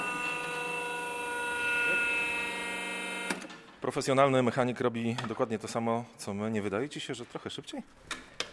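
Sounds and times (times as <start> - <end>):
hydraulic car lift motor whining: 0.0 - 3.5
speech: 3.9 - 8.2.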